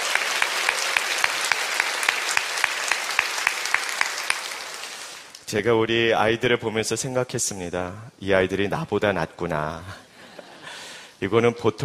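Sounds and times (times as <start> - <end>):
audience applause: 0.0 - 5.4
speech: 5.5 - 10.0, 11.2 - 11.8.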